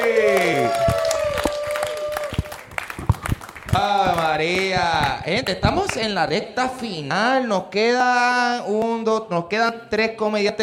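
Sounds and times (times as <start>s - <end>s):
audience applause: 0.0s - 5.2s
speech: 3.8s - 10.6s.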